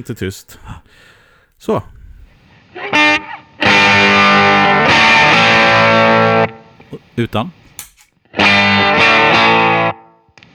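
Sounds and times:
speech: 0.0s - 2.0s, 6.9s - 7.6s
distorted electric guitar through treble booster pedal: 3.2s - 6.6s, 8.4s - 10.0s.

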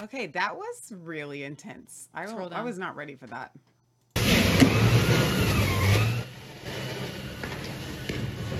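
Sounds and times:
speech: 0.2s - 3.7s
water cannons: 4.2s - 8.5s.

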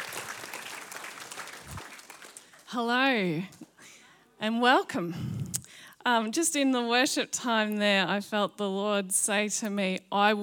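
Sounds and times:
church congregation applause welcoming a speaker: 0.0s - 2.8s
speech: 2.7s - 3.6s, 4.4s - 10.4s.

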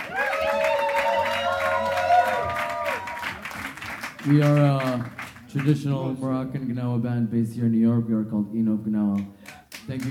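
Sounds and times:
audience applause for a Moroccan Gnawa master musician: 0.0s - 5.7s
speech: 4.2s - 10.0s.

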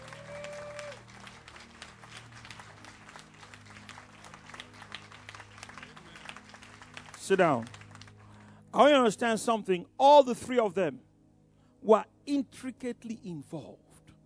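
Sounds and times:
audience clapping: 0.0s - 8.6s
speech: 7.3s - 7.8s, 8.7s - 11.1s, 11.8s - 13.8s.

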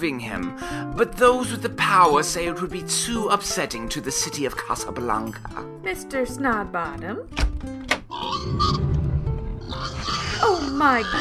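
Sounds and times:
speech: 0.0s - 8.9s, 10.1s - 11.1s
pigs squealing: 8.1s - 9.0s, 9.6s - 11.1s.

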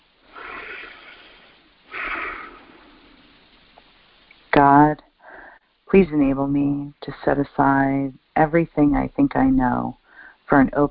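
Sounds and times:
group taking deep breaths during a prayer at a women's workshop: 0.3s - 3.6s, 5.2s - 5.8s
speech: 6.0s - 10.8s.

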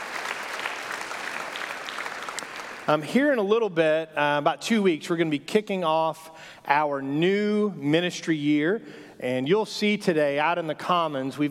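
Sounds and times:
church congregation applause: 0.0s - 3.0s
speech: 2.9s - 11.4s.

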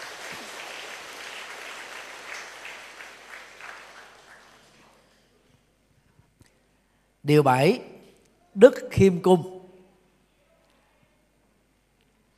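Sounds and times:
crowd applause: 0.0s - 5.1s
speech: 7.3s - 7.9s, 8.6s - 9.6s.

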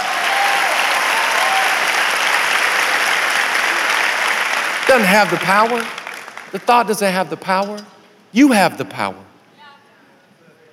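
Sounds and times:
audience clapping: 0.0s - 7.6s
speech: 4.9s - 9.3s.

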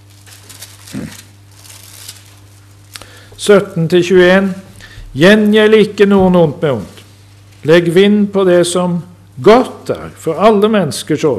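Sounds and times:
bible pages being turned: 0.0s - 2.9s
speech: 3.4s - 4.6s, 5.2s - 7.0s, 7.6s - 11.3s.

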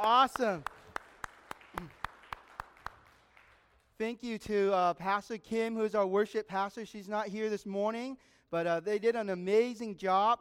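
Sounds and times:
speech: 0.0s - 0.7s, 1.8s - 2.0s, 4.0s - 10.4s
church congregation clapping for the worship team: 0.0s - 4.1s.

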